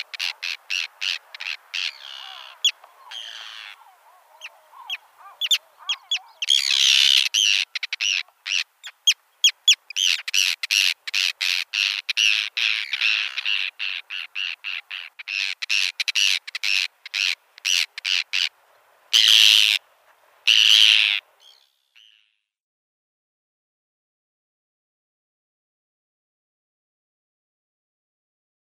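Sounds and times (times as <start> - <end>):
Arctic tern calling: 0.0 - 22.3.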